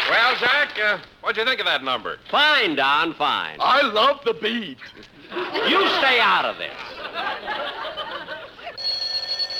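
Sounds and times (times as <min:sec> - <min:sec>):
speech: 0:00.1 - 0:07.8
laughter: 0:04.9 - 0:08.8
telephone bell ringing in a radio comedy: 0:08.8 - 0:09.5.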